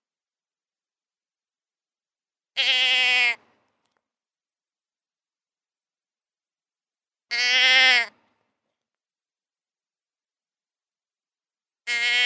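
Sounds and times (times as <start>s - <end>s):
deer bleating: 2.6s - 3.5s, 7.3s - 8.2s, 11.8s - 12.2s.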